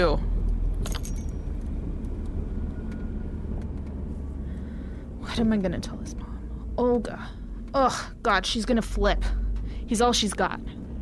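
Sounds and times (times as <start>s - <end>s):
speech: 0.0s - 0.3s, 5.4s - 10.8s
old car engine running: 0.0s - 11.0s
keys jangling: 0.8s - 1.4s.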